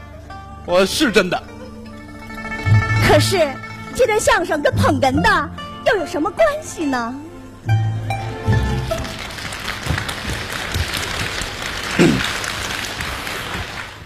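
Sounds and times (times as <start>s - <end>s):
speech: 0.7s - 1.5s, 3.1s - 7.8s
audience applause at a xiangsheng crosstalk comedy performance: 8.5s - 14.0s.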